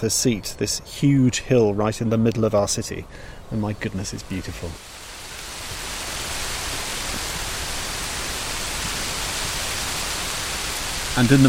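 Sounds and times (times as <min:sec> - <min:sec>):
speech: 0:00.0 - 0:04.9, 0:11.2 - 0:11.4
heavy rain: 0:03.3 - 0:11.4.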